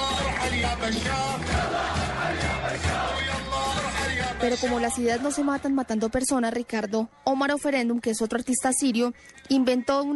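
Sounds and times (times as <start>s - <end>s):
protest crowd chanting a slogan: 0.0s - 6.2s
speech: 0.5s - 3.7s, 4.4s - 10.1s.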